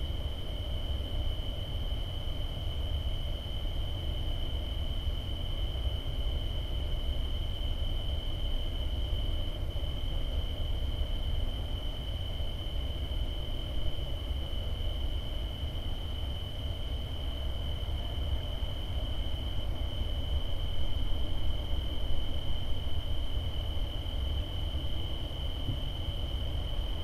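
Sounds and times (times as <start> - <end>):
suburban night ambience in a residential neighborhood: 0.0 - 27.0.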